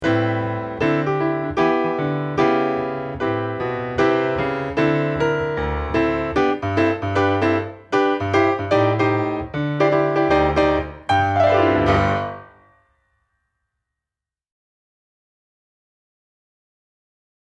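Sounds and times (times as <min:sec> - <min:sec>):
musical accompaniment: 0:00.0 - 0:13.0.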